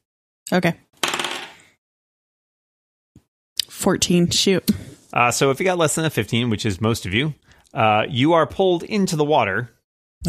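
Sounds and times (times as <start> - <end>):
speech: 0.5 - 0.9, 3.8 - 10.2
dice rattling and tumbling: 1.0 - 1.6.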